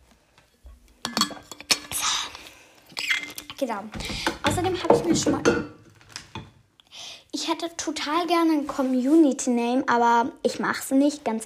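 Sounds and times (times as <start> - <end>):
glass clinking: 1.0 - 1.8
speech: 3.6 - 5.8, 7.5 - 11.4.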